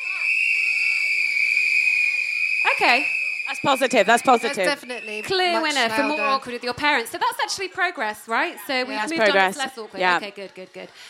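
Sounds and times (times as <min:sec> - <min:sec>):
audience whistling: 0:00.0 - 0:06.6
speech: 0:02.8 - 0:11.0.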